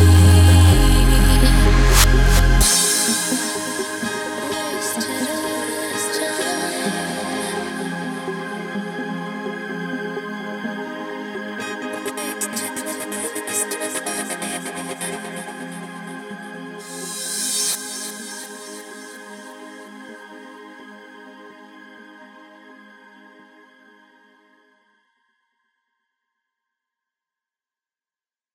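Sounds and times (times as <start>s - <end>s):
chillstep remix music: 0.0s - 20.4s.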